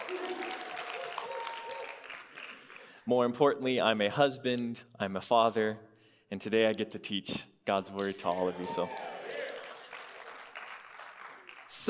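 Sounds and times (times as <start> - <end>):
church congregation clapping at a Sunday gathering of believers: 0.0 - 3.1, 7.9 - 11.8
speech: 3.1 - 9.1.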